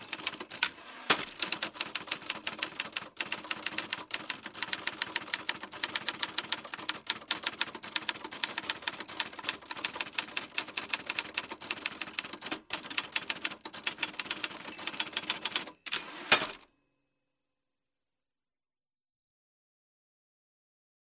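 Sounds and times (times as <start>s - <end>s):
typing on a typewriter: 0.0s - 16.7s.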